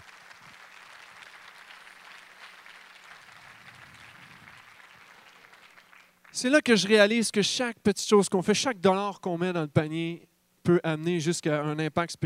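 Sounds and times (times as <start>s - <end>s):
audience applauding: 0.0s - 6.5s
speech: 6.4s - 12.2s.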